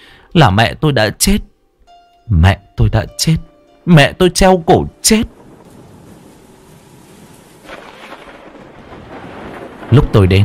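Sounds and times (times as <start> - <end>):
speech: 0.3 - 1.5, 2.3 - 5.4, 9.9 - 10.4
rain: 5.0 - 10.4
rumbling thunder: 5.3 - 10.4.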